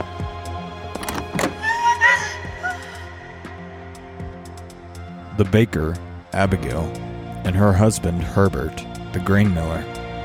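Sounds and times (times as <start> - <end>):
door opening: 0.9 - 2.3
speech: 5.4 - 10.0.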